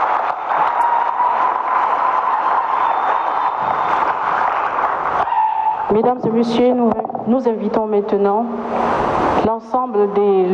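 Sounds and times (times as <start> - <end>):
warm round of applause: 0.0 - 5.9
speech: 6.0 - 10.5.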